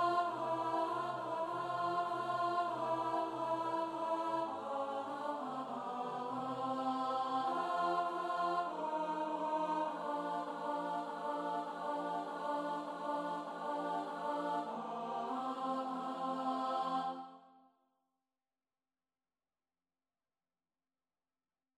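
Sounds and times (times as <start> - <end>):
alto study: 0.0 - 17.2.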